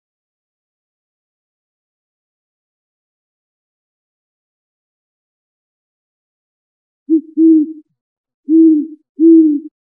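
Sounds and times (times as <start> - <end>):
great horned owl hooting: 7.1 - 7.8, 8.5 - 9.7.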